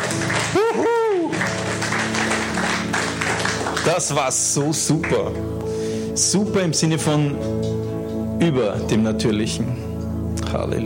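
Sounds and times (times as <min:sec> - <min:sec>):
audience applause: 0:00.0 - 0:05.4
speech: 0:03.8 - 0:07.8, 0:08.4 - 0:09.9, 0:10.5 - 0:10.8.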